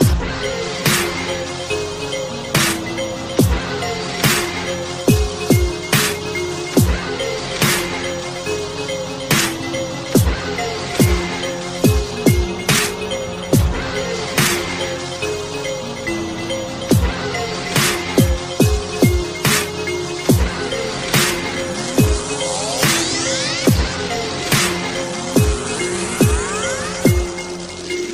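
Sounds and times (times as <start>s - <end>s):
dubstep music: 0.0s - 28.1s.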